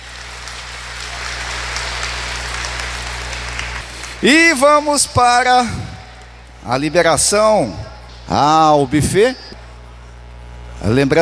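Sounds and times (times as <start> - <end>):
audience applause: 0.0 - 5.2
speech: 4.2 - 5.9, 6.6 - 9.5, 10.8 - 11.2.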